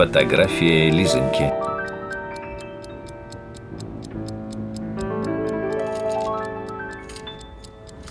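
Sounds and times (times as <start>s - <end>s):
speech: 0.0s - 1.8s
pocket watch ticking on a table: 0.0s - 8.1s
sustained musical tones: 0.0s - 8.1s.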